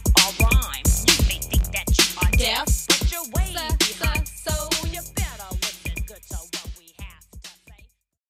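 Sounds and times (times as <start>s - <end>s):
80s dance music at 132 BPM: 0.0s - 7.9s.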